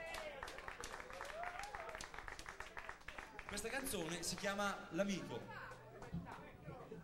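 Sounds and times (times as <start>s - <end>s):
audience applause: 0.0s - 4.7s
speech: 3.6s - 6.2s.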